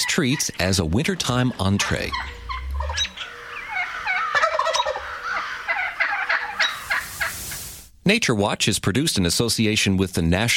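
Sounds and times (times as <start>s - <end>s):
wild turkeys gobbling: 0.0s - 7.7s
speech: 0.2s - 2.4s, 8.0s - 10.5s.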